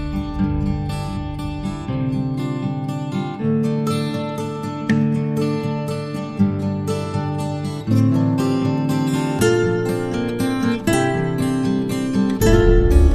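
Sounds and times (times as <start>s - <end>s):
percussion: 0.0s - 5.0s, 12.2s - 13.1s
guitars: 0.0s - 13.1s.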